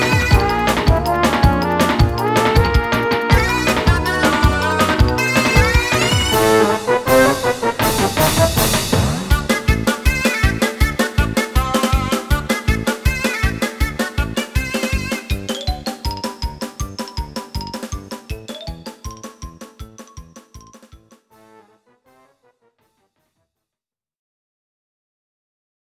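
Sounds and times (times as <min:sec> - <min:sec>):
noisy uproar: 0:00.0 - 0:15.3.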